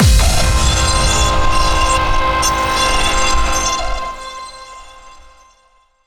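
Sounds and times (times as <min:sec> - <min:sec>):
action boss battle music: 0:00.0 - 0:03.5.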